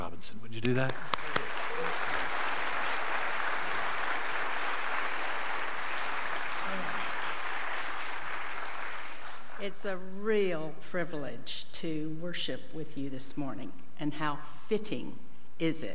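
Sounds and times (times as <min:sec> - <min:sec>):
speech: 0:00.2 - 0:01.1, 0:09.6 - 0:15.9
audience applause welcoming guests at a church service: 0:00.6 - 0:09.6.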